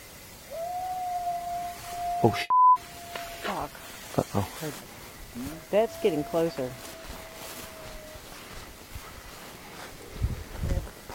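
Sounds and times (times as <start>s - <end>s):
distant howl: 0.4s - 3.9s, 5.3s - 8.7s
speech: 2.2s - 2.5s, 3.4s - 6.9s.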